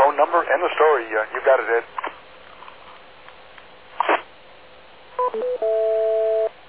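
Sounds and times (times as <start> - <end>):
speech: 0.2 - 2.1
single beep tone on radio link: 5.2 - 6.5.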